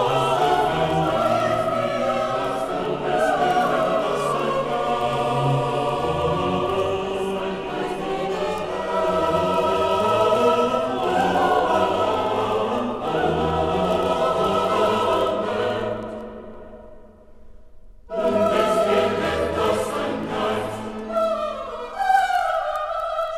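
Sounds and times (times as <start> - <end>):
choir singing a motet: 0.0 - 17.3, 18.1 - 23.3.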